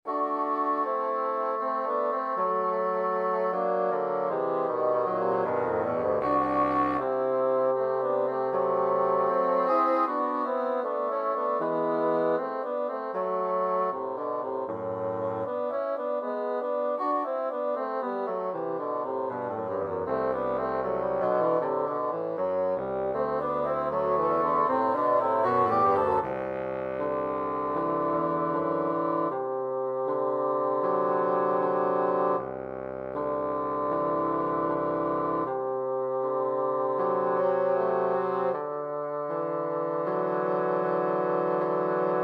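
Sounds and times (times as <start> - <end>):
three bassoons playing a divertimento andante: 0.0 - 42.2.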